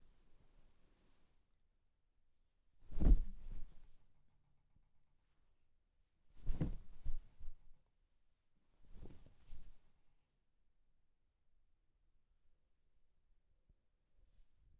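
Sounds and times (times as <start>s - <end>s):
body falling onto a bed: 2.8s - 3.9s, 6.4s - 7.5s, 8.9s - 9.7s.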